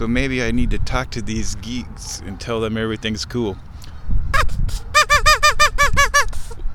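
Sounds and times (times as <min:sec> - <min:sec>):
speech: 0:00.0 - 0:03.7
duck call blown in nasal quacking blasts: 0:04.4 - 0:06.6.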